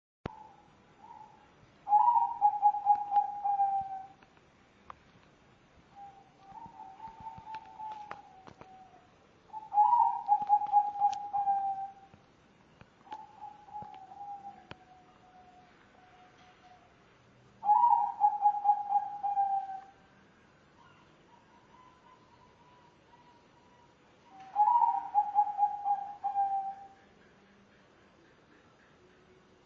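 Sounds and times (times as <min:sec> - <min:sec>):
dove cooing with a low hollow note: 0:00.3 - 0:04.2, 0:06.0 - 0:12.1, 0:13.1 - 0:16.9, 0:17.6 - 0:20.0, 0:20.8 - 0:27.1.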